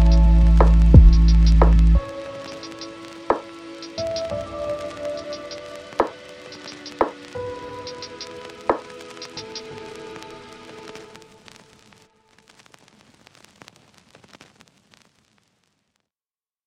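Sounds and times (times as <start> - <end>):
instrumental lofi music: 0.0 - 12.0.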